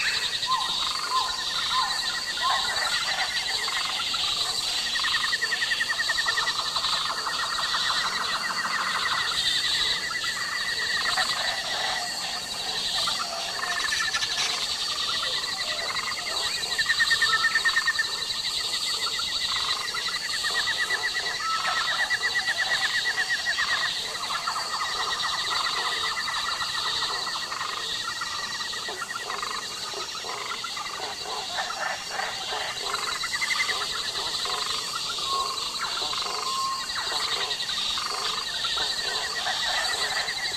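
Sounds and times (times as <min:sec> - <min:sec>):
South American jungle at night: 0:00.0 - 0:40.5.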